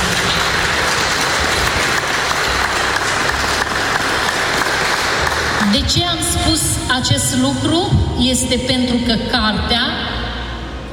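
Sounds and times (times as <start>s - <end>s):
audience applause: 0.0s - 5.9s
speech: 5.7s - 10.0s.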